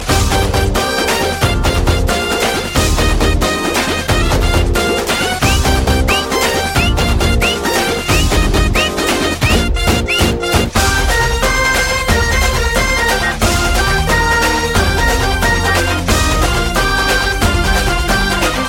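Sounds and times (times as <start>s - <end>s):
beat: 0.1s - 18.4s.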